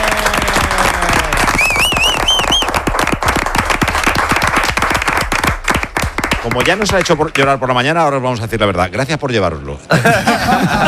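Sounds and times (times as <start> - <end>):
studio applause: 0.0 - 7.8
speech: 6.5 - 10.8
laughter: 9.9 - 10.8.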